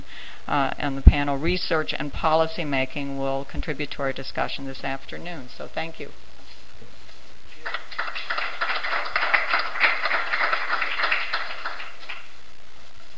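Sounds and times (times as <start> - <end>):
speech: 0.5 - 6.2
audience applause: 7.6 - 12.3.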